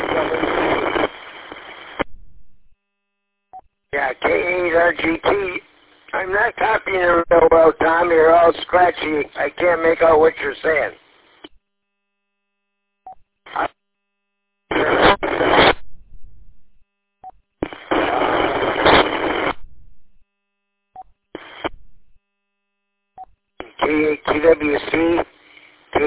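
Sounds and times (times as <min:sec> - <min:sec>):
radio static with no signal: 0:00.0 - 0:02.3, 0:04.0 - 0:11.5, 0:13.4 - 0:13.8, 0:14.7 - 0:16.0, 0:17.6 - 0:19.7, 0:21.4 - 0:21.8, 0:23.6 - 0:26.0
speech: 0:04.0 - 0:11.0.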